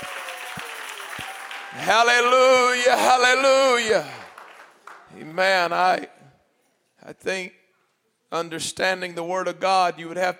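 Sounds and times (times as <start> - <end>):
audience clapping: 0.0 - 5.4
speech: 1.2 - 4.2, 5.1 - 6.2, 7.0 - 7.6, 8.3 - 10.3.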